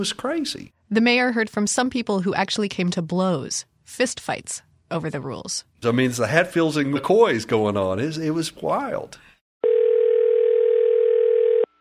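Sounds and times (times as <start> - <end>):
speech: 0.0 - 9.3
telephone tone calling a city hotline: 9.6 - 11.7.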